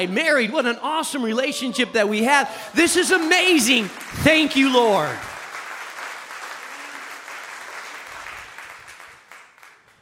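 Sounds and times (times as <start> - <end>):
speech: 0.0 - 5.3
married men and women clapping: 2.7 - 10.0.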